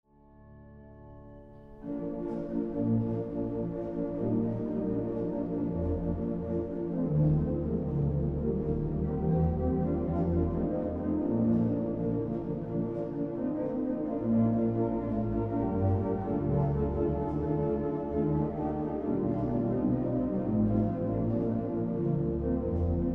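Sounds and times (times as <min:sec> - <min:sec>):
organ melody arrangement: 0:00.4 - 0:23.1.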